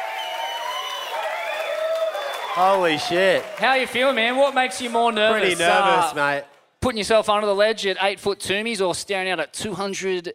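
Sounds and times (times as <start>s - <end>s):
high sustained cheers or whistles: 0.0s - 3.8s
audience applause: 0.0s - 6.4s
speech: 2.6s - 10.3s.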